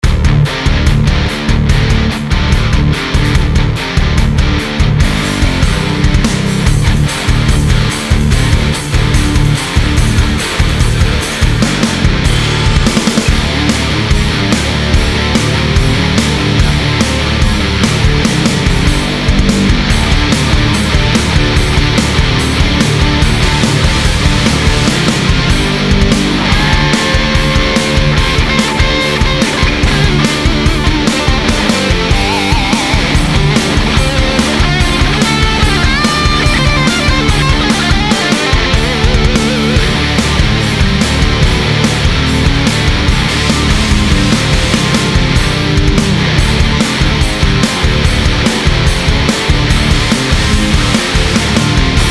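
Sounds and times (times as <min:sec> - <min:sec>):
hard rock music: 0:00.0 - 0:52.1.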